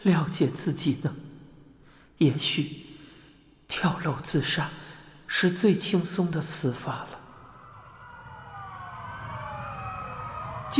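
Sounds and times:
speech: 0.0s - 1.3s, 2.2s - 2.9s, 3.7s - 7.2s
distant ambulance siren: 7.3s - 10.7s.

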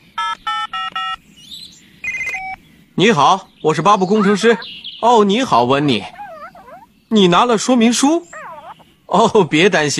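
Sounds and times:
telephone keypad dialing beeps: 0.2s - 1.2s, 2.0s - 2.6s
speech: 3.0s - 6.2s, 7.1s - 8.4s, 9.1s - 9.9s.

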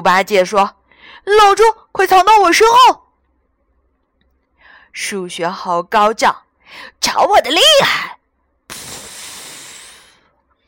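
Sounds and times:
speech: 0.0s - 3.0s, 5.0s - 8.9s
aerosol insect spray hissing: 8.7s - 10.2s.

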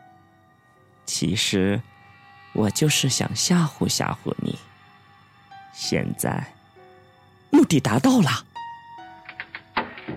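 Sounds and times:
faint steady tonal hum: 0.0s - 10.1s
speech: 1.2s - 4.7s, 5.8s - 6.6s, 7.6s - 8.5s
door slamming shut: 9.3s - 10.1s.

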